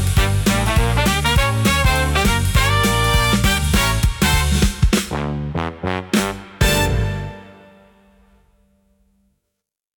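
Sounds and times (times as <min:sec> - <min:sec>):
electro swing pop music: 0:00.0 - 0:07.8.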